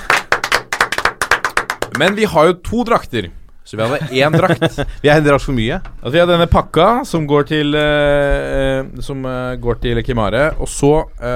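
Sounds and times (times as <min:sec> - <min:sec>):
applause: 0:00.0 - 0:02.3
speech: 0:02.0 - 0:11.3
laughter: 0:03.8 - 0:04.9.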